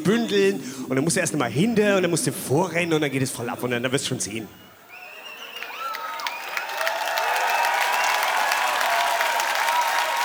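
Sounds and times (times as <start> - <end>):
speech: 0.0 - 4.7
audience applause: 4.9 - 10.2.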